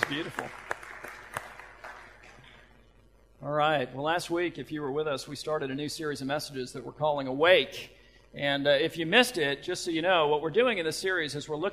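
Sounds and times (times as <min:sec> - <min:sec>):
audience clapping: 0:00.0 - 0:02.7
speech: 0:00.1 - 0:00.7, 0:03.4 - 0:11.7.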